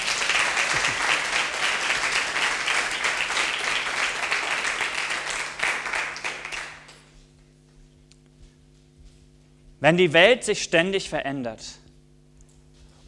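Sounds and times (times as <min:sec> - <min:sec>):
audience applauding: 0:00.0 - 0:07.1
speech: 0:00.7 - 0:01.2, 0:09.8 - 0:11.8.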